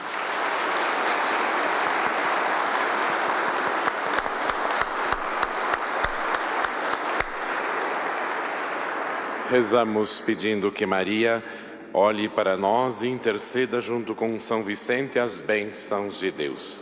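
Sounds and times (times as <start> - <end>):
applause: 0.0 - 10.5
speech: 9.5 - 16.7.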